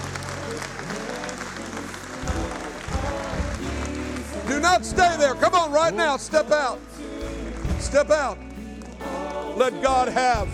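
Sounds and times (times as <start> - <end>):
audience clapping hands: 0.0 - 5.7, 7.2 - 10.0
speech: 4.7 - 6.9, 7.8 - 8.4, 9.6 - 10.5.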